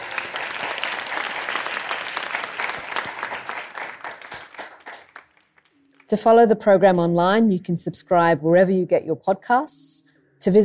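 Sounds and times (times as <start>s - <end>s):
audience applause: 0.0s - 5.8s
speech: 6.1s - 10.6s.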